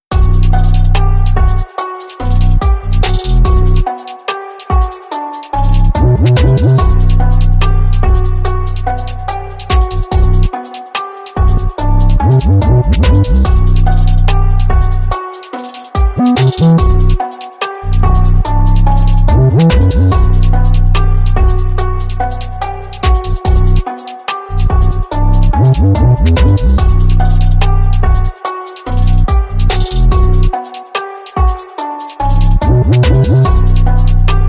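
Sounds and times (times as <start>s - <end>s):
instrumental Japanese trap drill hip hop beat: 0.1s - 34.4s.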